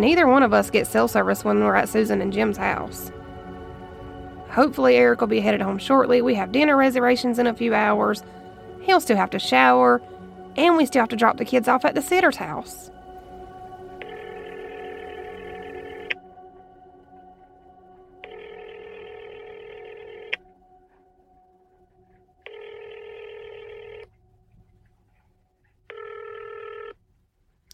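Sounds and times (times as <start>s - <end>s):
speech: 0.0s - 3.2s, 4.5s - 12.9s
faint hum: 0.0s - 26.8s
telephone line ringing: 14.0s - 16.2s, 18.2s - 20.4s, 22.5s - 24.1s, 25.9s - 27.0s.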